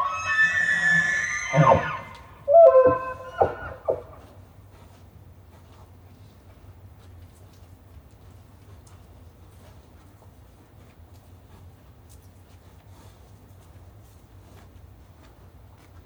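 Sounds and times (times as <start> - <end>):
bull elk bugling: 0.0 - 4.2.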